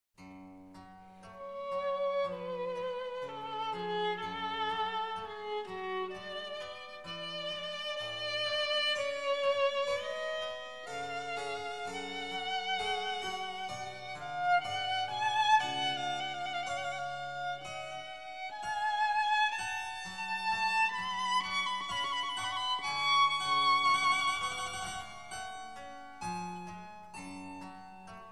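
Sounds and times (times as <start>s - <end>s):
violin in a sonata movement: 0.8s - 28.3s.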